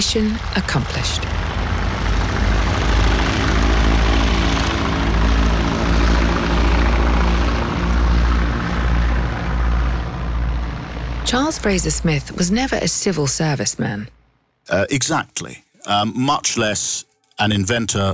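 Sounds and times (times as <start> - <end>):
speech: 0.0 - 1.5, 11.3 - 18.1
propeller aircraft taxiing and taking off: 0.0 - 14.2.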